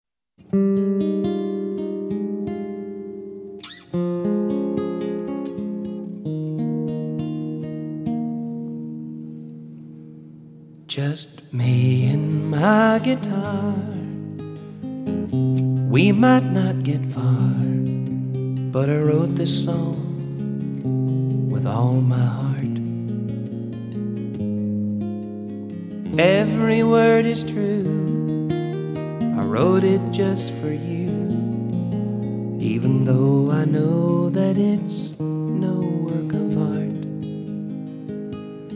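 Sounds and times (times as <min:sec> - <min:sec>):
guitar: 0:00.4 - 0:38.7.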